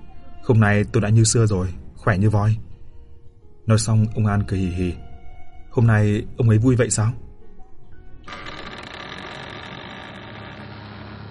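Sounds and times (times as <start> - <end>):
speech: 0.5 - 2.7, 3.7 - 5.0, 5.8 - 7.2
gate being opened: 8.2 - 11.2.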